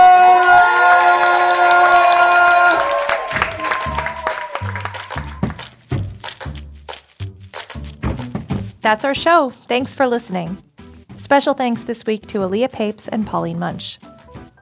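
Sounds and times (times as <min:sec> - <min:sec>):
audience applause: 0:00.0 - 0:05.7
thumping rhythmic beat: 0:03.3 - 0:12.7
speech: 0:08.9 - 0:14.1.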